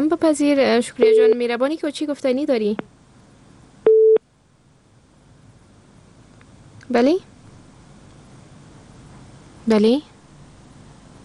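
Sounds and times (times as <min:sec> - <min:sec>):
speech: 0:00.1 - 0:02.9, 0:06.9 - 0:07.3, 0:09.7 - 0:10.1
telephone busy-tone beep after a disconnected call: 0:01.0 - 0:01.4, 0:03.9 - 0:04.2.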